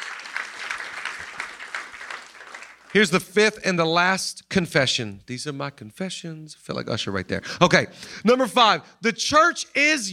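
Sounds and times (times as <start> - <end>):
church congregation clapping: 0.0 - 3.6
speech: 2.9 - 10.1.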